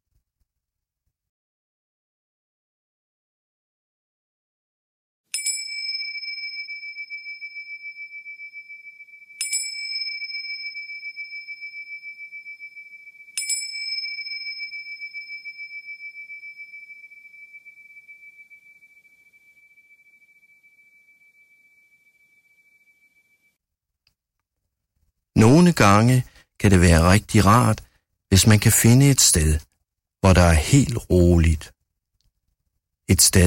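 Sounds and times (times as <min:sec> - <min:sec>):
bells ringing to start exercise: 0:05.4 - 0:23.4
speech: 0:25.4 - 0:31.8, 0:33.1 - 0:33.4.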